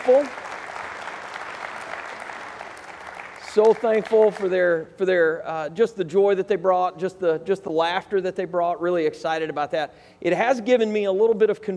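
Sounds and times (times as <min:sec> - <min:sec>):
speech: 0:00.0 - 0:00.4, 0:03.6 - 0:11.7
audience applause for two performers: 0:00.0 - 0:04.5.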